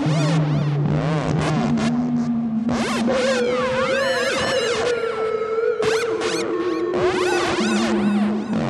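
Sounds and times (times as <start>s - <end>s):
synth oscillator drone with reverb and delay: 0.0s - 8.6s
warbling synth chirps: 2.7s - 8.6s.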